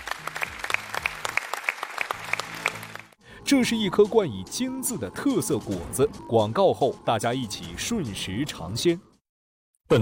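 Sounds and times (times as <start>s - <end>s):
studio audience clapping: 0.0s - 3.2s
speech: 3.5s - 9.1s.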